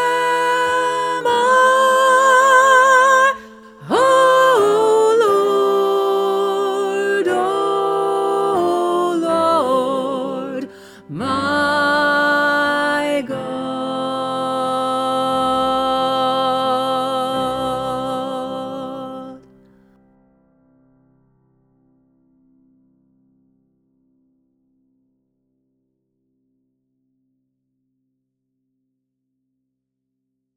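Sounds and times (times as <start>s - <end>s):
soprano singing: 0.0s - 19.6s.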